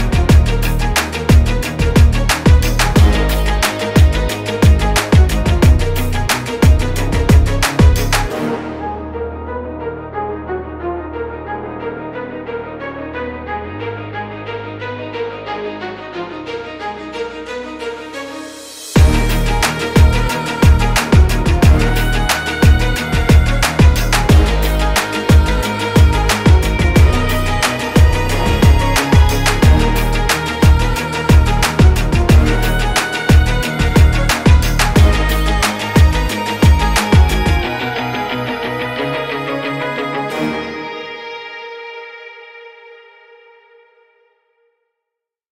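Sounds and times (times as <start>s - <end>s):
hard motivational epic rock type hip hop instrumental beat: 0.0s - 9.3s, 16.6s - 42.3s.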